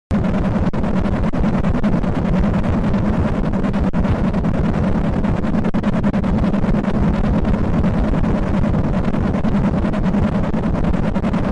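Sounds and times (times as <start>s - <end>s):
distorted loud earrape noise: 0.1s - 11.5s.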